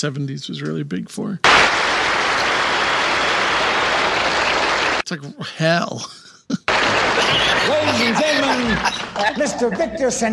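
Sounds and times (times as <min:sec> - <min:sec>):
speech: 0:00.0 - 0:02.2, 0:05.1 - 0:06.6, 0:07.3 - 0:10.3
canned studio applause from a 1970s TV show: 0:01.4 - 0:05.1, 0:06.7 - 0:09.7
laughter: 0:05.3 - 0:10.3.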